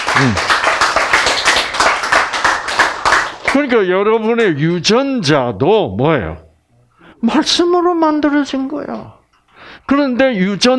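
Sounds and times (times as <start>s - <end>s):
audience clapping: 0.0s - 3.7s
speech: 0.2s - 0.5s, 3.5s - 6.4s, 7.2s - 9.2s, 9.8s - 10.7s.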